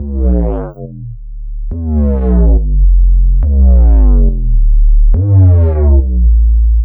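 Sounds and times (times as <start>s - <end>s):
dubstep bassline in D: 0.0s - 6.8s.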